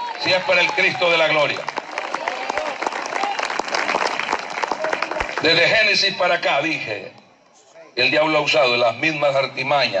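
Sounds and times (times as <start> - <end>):
audience applause: 0.0 - 5.6
speech: 0.2 - 1.7, 5.4 - 7.2, 8.0 - 9.9.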